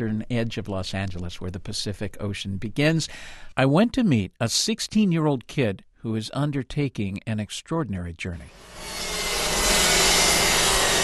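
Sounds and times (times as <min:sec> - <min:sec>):
speech: 0:00.0 - 0:09.1
sawing wood in a boatyard: 0:08.5 - 0:11.0
sanding wood in a boatyard: 0:08.6 - 0:11.0.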